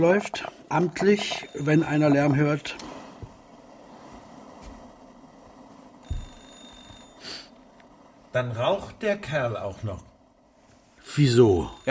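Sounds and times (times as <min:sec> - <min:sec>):
speech: 0:00.0 - 0:02.9, 0:08.4 - 0:10.1, 0:11.1 - 0:11.9
telephone ringing: 0:00.8 - 0:02.8, 0:06.0 - 0:07.8, 0:11.0 - 0:11.9.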